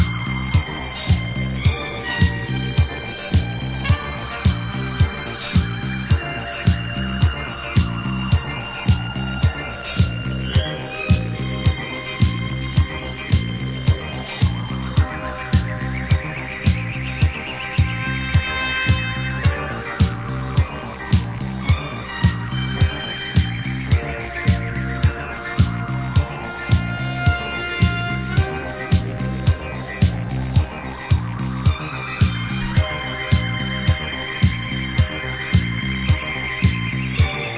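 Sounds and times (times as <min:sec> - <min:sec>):
Cuban jazz-funk disco and Brazilian soul music: 0:00.0 - 0:37.5.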